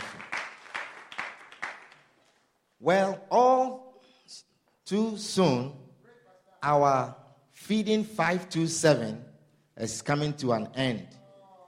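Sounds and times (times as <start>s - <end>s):
clapping: 0.0s - 2.4s
speech: 2.8s - 3.4s, 4.9s - 5.8s, 6.6s - 11.2s.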